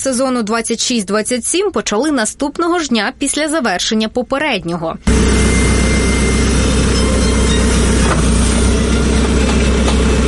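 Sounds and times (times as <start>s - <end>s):
speech: 0.0s - 5.8s
yellow excavator engine running: 5.0s - 10.2s.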